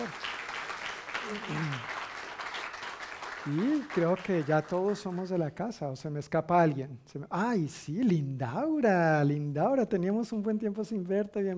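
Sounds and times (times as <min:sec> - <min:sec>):
audience applause: 0:00.0 - 0:05.4
speech: 0:01.3 - 0:02.0, 0:03.4 - 0:11.5.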